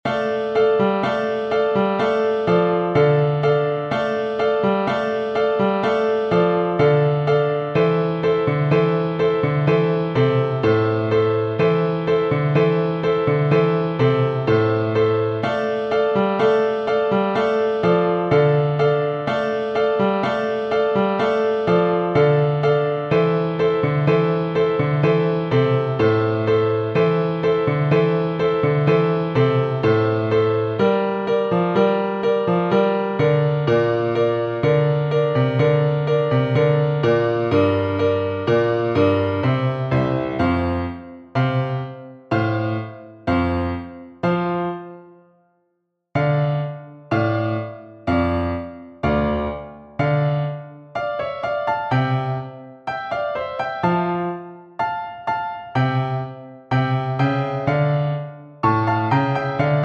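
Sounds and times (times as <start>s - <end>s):
piano: 0.0s - 59.8s.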